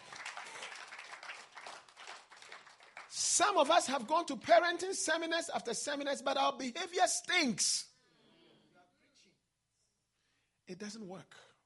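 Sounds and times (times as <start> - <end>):
audience clapping: 0.0 - 4.1
speech: 3.2 - 7.9, 10.7 - 11.5.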